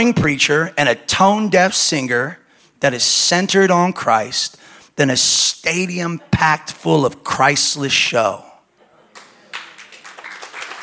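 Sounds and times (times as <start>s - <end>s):
speech: 0.0s - 8.5s
audience clapping: 9.1s - 10.8s.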